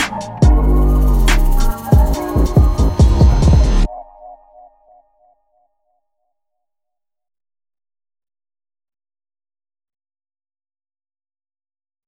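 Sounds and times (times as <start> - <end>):
music loops: 0.0 - 5.0.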